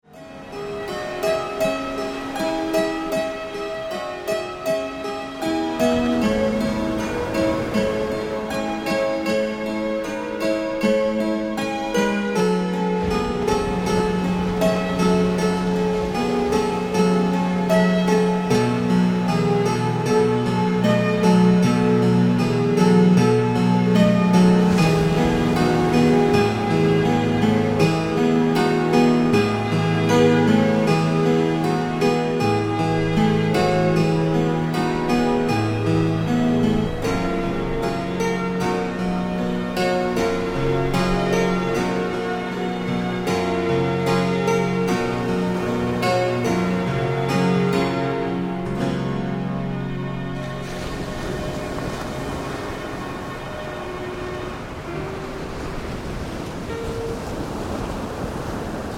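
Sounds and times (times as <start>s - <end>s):
relaxation music: 0.0s - 58.9s.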